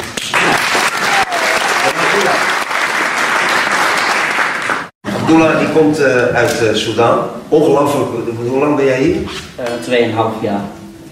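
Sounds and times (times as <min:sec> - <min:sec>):
audience applause: 0:00.0 - 0:04.9
speech: 0:05.3 - 0:10.8.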